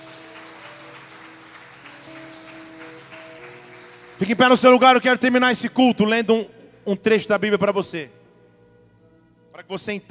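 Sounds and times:
audience applause: 0.0s - 4.6s
sustained keyboard or organ chords: 0.0s - 10.0s
speech: 4.2s - 8.2s, 9.6s - 10.0s.

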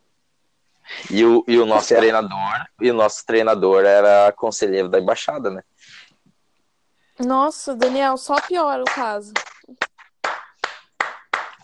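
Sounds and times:
speech: 1.1s - 6.0s, 7.2s - 9.9s
hand claps: 7.8s - 11.6s.

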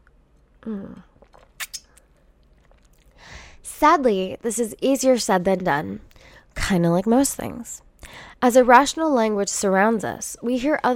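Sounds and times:
speech: 0.6s - 1.1s, 3.8s - 10.9s
person sipping coffee: 0.8s - 3.3s.

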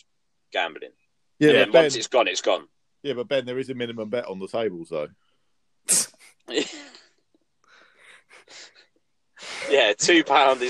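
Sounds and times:
speech: 0.5s - 5.2s, 5.8s - 7.0s, 9.6s - 10.6s
heavy breathing into the microphone: 7.6s - 9.8s.

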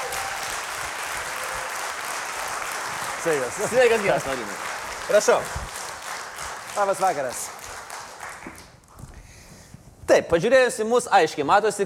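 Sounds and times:
studio audience applause welcoming a guest onto a television show: 0.0s - 8.8s
speech: 3.2s - 5.6s, 6.8s - 7.6s, 10.1s - 11.8s.

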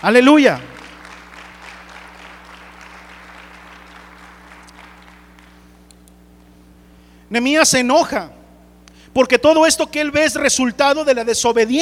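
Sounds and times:
speech: 0.0s - 0.7s, 7.3s - 8.4s, 9.2s - 11.7s
audience applauding: 0.0s - 5.7s.

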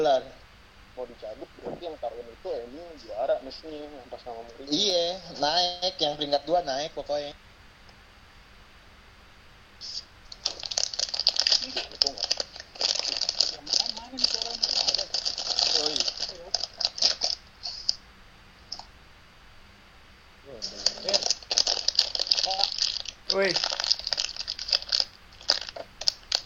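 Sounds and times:
speech: 0.0s - 0.4s, 1.0s - 7.5s, 11.6s - 12.3s, 14.1s - 14.4s, 23.4s - 23.7s
package wrapper torn open with plastic crinkling: 10.3s - 18.0s, 20.6s - 26.4s.

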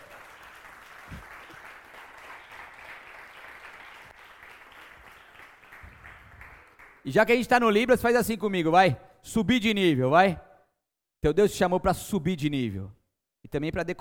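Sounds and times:
audience applause: 0.0s - 7.0s
speech: 7.0s - 10.5s, 11.2s - 13.9s.

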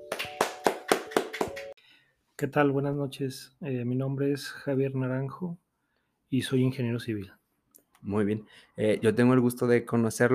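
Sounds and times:
applause: 0.0s - 1.8s
speech: 2.4s - 5.6s, 6.3s - 7.4s, 8.0s - 10.3s.

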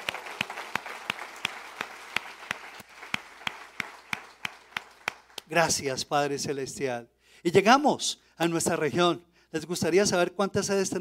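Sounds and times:
audience applause: 0.0s - 5.5s
speech: 5.5s - 10.9s.

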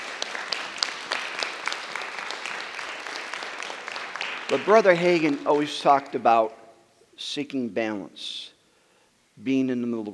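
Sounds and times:
church congregation applauding at a Wednesday night campmeeting service: 0.0s - 6.6s
speech: 4.5s - 6.6s, 7.2s - 8.5s, 9.4s - 10.1s.

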